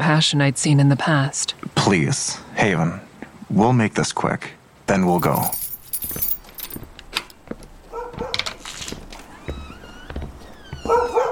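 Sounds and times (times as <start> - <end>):
speech: 0.0 - 6.2
dog barking: 7.9 - 8.6, 10.8 - 11.3.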